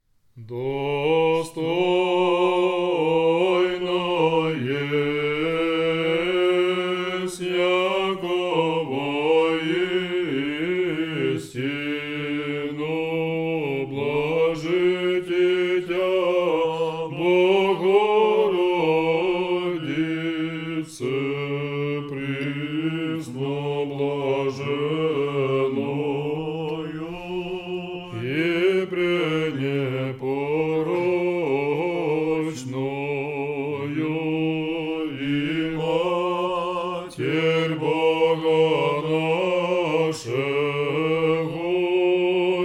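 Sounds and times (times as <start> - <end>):
chant in tone three: 0.4 - 42.6.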